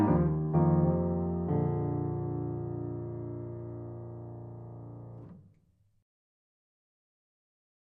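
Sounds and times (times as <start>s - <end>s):
solo piano: 0.0s - 5.5s.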